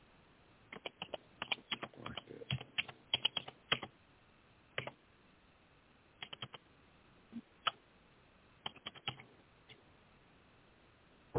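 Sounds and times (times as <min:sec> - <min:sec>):
typing on a computer keyboard: 0:00.7 - 0:03.9, 0:04.8 - 0:05.0, 0:06.2 - 0:06.6, 0:08.6 - 0:09.2.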